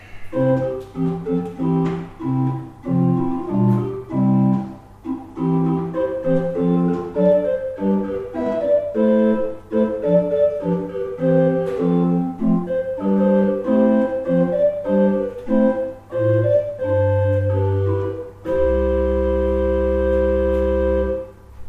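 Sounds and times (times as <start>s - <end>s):
pipe organ: 0.0s - 21.6s.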